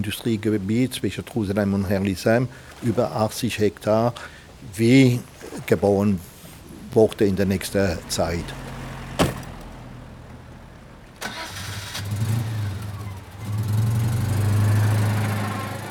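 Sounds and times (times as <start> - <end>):
speech: 0.0 - 6.3, 6.9 - 8.6
Citroën 2CV car engine starting and driving off: 7.4 - 15.8
sharp clunks: 9.2 - 9.7.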